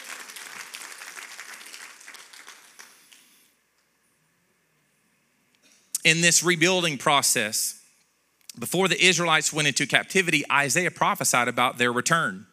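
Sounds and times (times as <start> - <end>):
audience clapping in praise: 0.0 - 3.5
speech: 6.0 - 7.8, 8.6 - 12.5.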